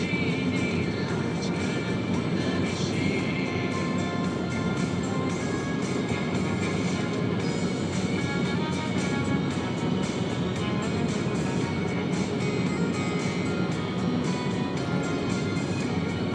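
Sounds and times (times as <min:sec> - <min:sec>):
bad return-trip music: 0:00.0 - 0:16.3.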